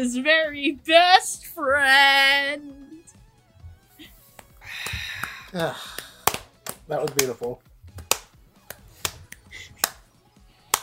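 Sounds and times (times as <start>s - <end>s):
speech: 0.0s - 2.8s, 5.5s - 6.0s, 6.9s - 7.6s
angry clapping: 4.3s - 10.0s.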